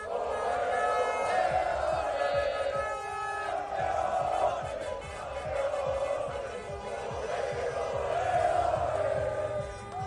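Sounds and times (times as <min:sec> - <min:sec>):
crowd shouting and celebrating in streets of Santander: 0:00.0 - 0:10.0.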